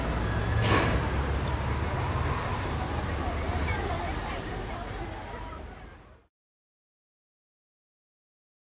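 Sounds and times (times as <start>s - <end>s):
roller coaster: 0.0s - 5.7s.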